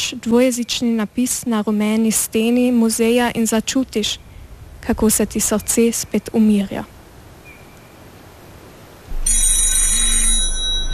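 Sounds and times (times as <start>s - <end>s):
speech: 0.1s - 7.0s
telephone ringing: 9.1s - 10.9s.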